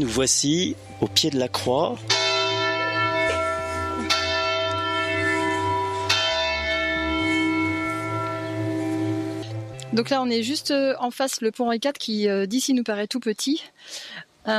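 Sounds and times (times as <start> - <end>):
speech: 0.0 - 2.3, 10.0 - 14.5
church bells ringing the hour: 1.1 - 10.6.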